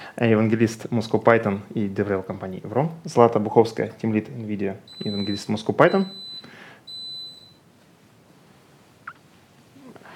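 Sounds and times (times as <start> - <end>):
speech: 0.2 - 6.2
electric kettle beeping: 4.9 - 7.6.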